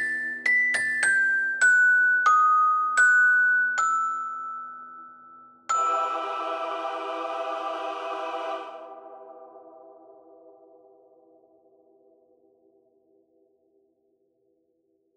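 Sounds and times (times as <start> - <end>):
music box: 0.0 - 7.9.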